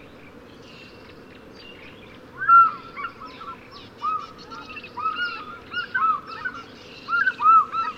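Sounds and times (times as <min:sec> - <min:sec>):
African fish eagles yelping: 0:02.4 - 0:07.9.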